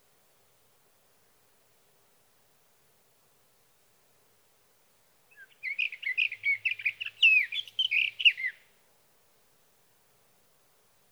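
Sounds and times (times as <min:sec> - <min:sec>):
sage thrasher warbling song: 0:05.3 - 0:08.6.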